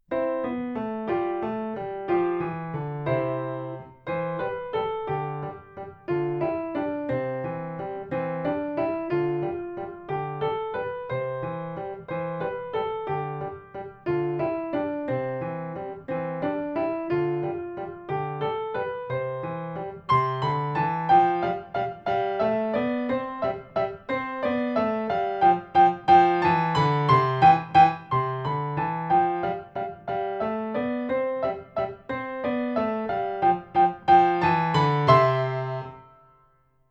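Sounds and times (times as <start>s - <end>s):
scale waltz: 0.3s - 36.1s.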